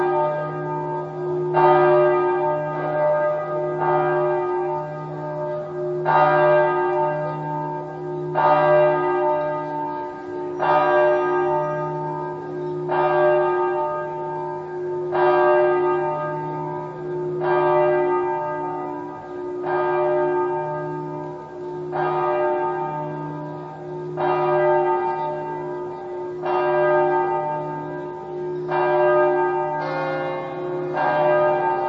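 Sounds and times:
bells ringing in Cividat: 0:00.0 - 0:31.8.

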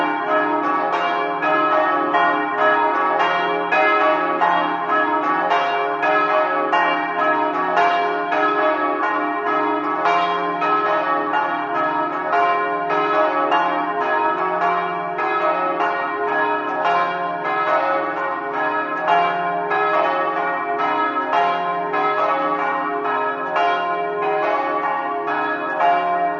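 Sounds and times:
bells ringing: 0:00.0 - 0:26.3.

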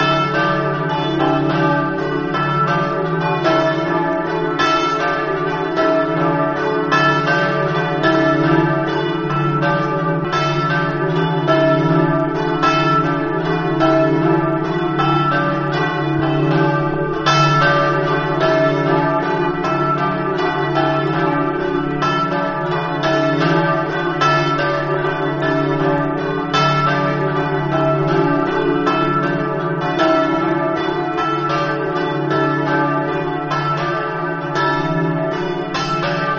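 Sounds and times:
church bells ringing in Mereto: 0:00.0 - 0:36.3.

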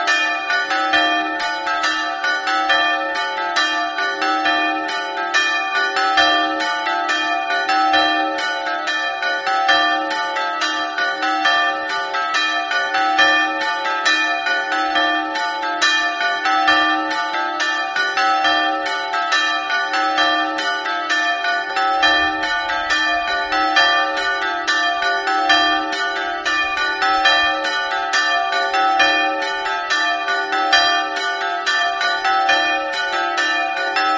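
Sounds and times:
bells ringing: 0:00.0 - 0:34.1.

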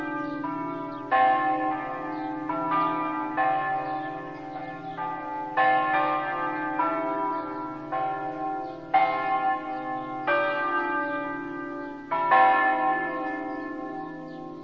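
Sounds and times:
bells ringing in Aiello: 0:00.0 - 0:14.6.

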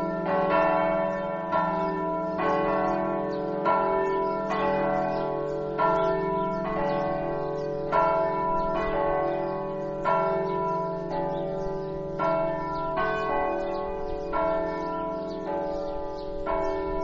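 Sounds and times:
bells: 0:00.0 - 0:17.0.

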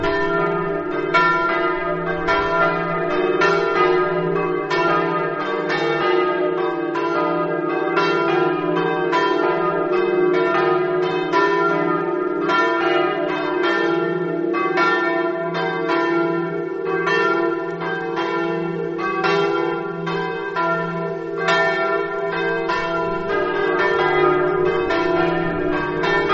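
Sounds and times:
bells in Jalmicco: 0:00.0 - 0:26.3.

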